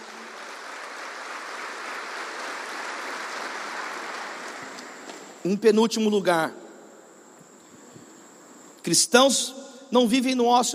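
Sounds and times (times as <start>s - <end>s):
audience applause: 0.0s - 5.1s
speech: 5.4s - 6.6s, 8.9s - 10.7s.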